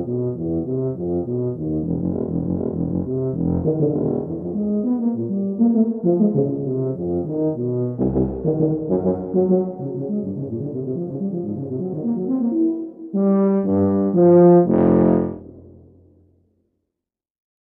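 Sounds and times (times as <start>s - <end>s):
tuba playing intervals: 0.0s - 16.0s.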